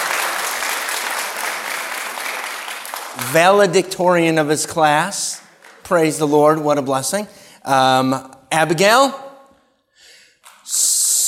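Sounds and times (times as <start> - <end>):
crowd applause: 0.0 - 3.7
speech: 3.2 - 9.2, 10.7 - 11.2.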